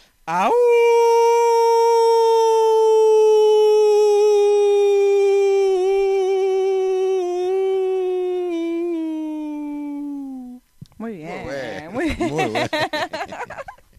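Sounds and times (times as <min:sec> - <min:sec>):
speech: 0:00.3 - 0:00.9
person imitating wolf howl: 0:00.4 - 0:10.6
laughter: 0:11.7 - 0:13.8.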